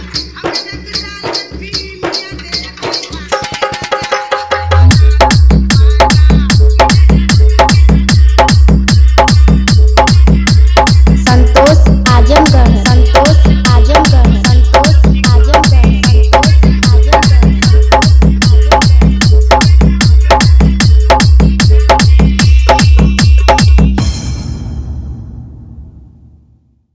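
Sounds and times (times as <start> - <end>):
vibrating bass music mix: 4.7 - 24.1.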